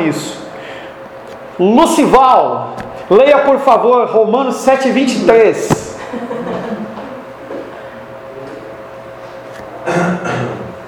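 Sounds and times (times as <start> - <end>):
speech: 0.0 - 0.4, 1.6 - 6.2
laughter: 5.9 - 7.3
person clearing throat: 9.8 - 10.8.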